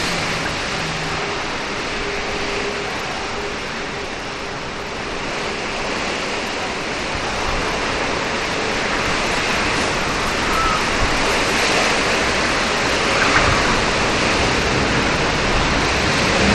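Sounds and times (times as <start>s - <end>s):
rain: 0.0s - 16.5s
birds whistling: 10.2s - 11.0s.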